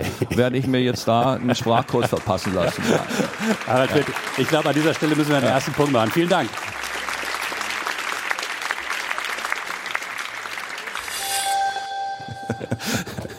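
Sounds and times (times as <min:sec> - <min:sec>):
laughter: 0:00.0 - 0:05.2, 0:12.2 - 0:13.3
speech: 0:00.0 - 0:06.7
audience applause: 0:01.0 - 0:11.4.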